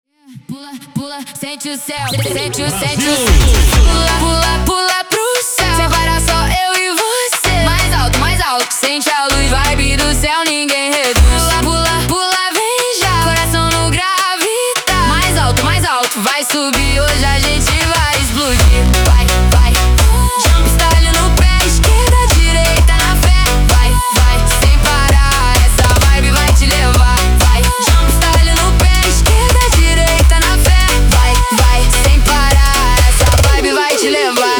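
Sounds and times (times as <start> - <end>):
jumpstyle funk music: 2.2 - 34.5.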